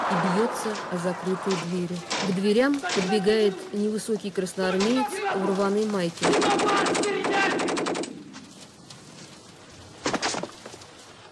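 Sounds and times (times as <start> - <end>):
speech: 0.1 - 7.8
burst of automatic gunfire: 6.2 - 8.3.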